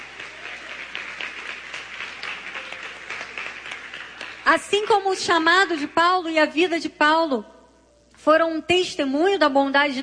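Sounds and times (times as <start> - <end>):
audience applauding: 0.0 - 5.9
speech: 4.5 - 7.5, 8.2 - 10.0.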